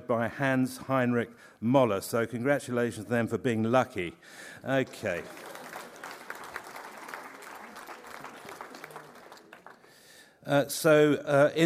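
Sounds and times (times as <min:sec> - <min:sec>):
speech: 0:00.1 - 0:05.6, 0:10.5 - 0:11.6
audience applause: 0:04.7 - 0:10.2.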